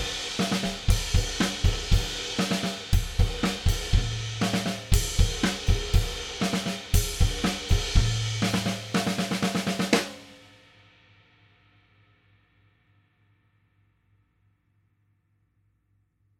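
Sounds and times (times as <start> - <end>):
drums: 0.0 - 11.9.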